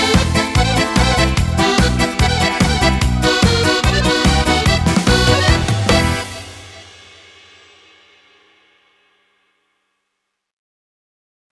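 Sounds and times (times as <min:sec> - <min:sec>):
Biesiada style music on a Yamaha PSR SX900 keyboard: 0:00.0 - 0:07.3.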